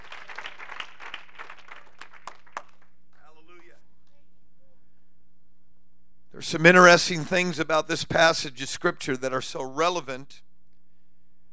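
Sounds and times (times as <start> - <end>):
audience clapping hands in praise: 0.0 - 3.8
speech: 6.4 - 10.5.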